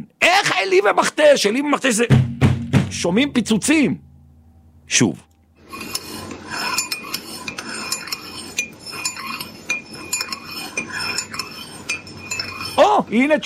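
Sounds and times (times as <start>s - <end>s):
speech: 0.0s - 2.3s, 2.9s - 4.0s, 4.9s - 5.3s, 13.0s - 13.4s
glass cup being moved from side to side: 5.6s - 12.8s.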